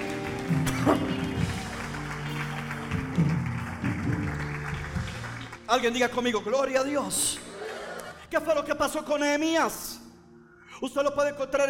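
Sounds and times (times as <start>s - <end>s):
audience clapping: 0.0s - 6.2s
speech: 0.5s - 1.2s, 5.7s - 7.4s, 8.3s - 9.9s, 10.8s - 11.6s.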